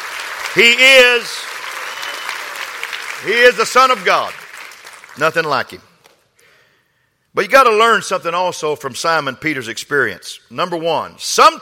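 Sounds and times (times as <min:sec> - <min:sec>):
audience clapping hands: 0:00.0 - 0:06.2
speech: 0:00.5 - 0:01.5, 0:03.2 - 0:04.4, 0:05.2 - 0:05.9, 0:07.4 - 0:11.5.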